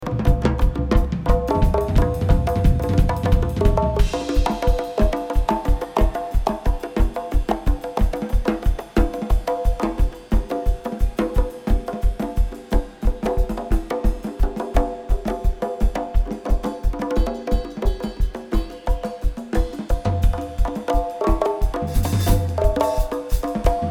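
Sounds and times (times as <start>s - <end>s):
drums: 0.0s - 23.8s.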